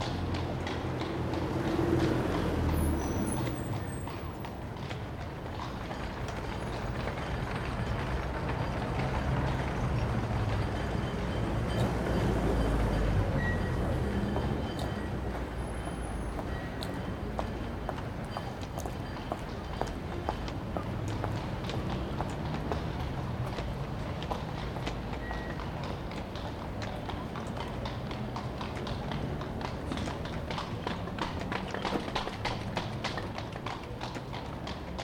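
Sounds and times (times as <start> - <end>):
London apartment exterior evening ambience: 0.0 - 35.0.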